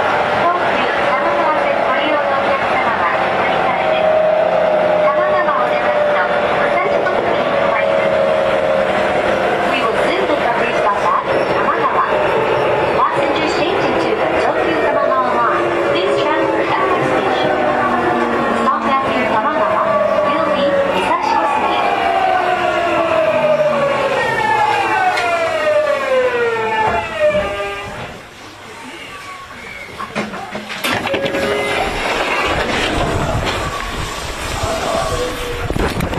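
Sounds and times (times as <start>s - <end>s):
9000 series train running: 0.0s - 36.1s.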